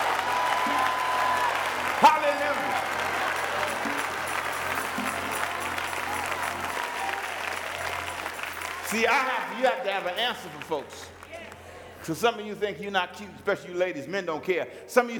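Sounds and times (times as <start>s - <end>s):
audience shouting: 0.0s - 9.2s
audience applauding: 0.0s - 12.4s
speech: 8.9s - 11.2s, 12.0s - 15.1s.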